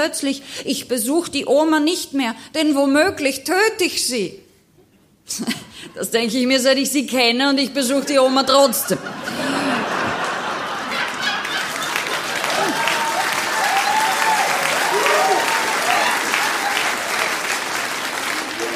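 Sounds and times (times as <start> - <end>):
speech: 0.0 - 4.4, 5.3 - 9.6
laughter: 8.0 - 13.5
audience applause: 9.4 - 18.7.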